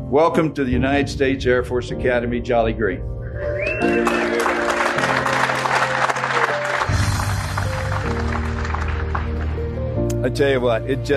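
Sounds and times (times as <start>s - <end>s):
speech: 0.1s - 4.4s, 10.2s - 11.1s
sustained music chords: 0.7s - 11.0s
audience applauding to welcome a guest at the United States Air Force Academy: 3.4s - 9.9s.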